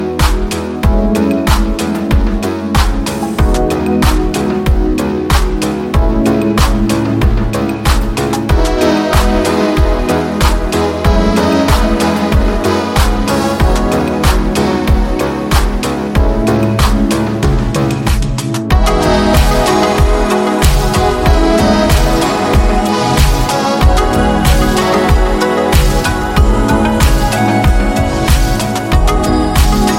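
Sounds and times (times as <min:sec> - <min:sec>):
80s retro street music: 0:00.0 - 0:29.9.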